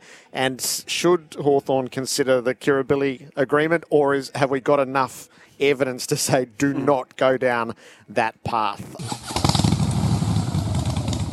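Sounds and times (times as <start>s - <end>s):
speech: 0.3s - 9.3s
Harley-Davidson Pan America motorcycle engine revving: 9.0s - 11.3s.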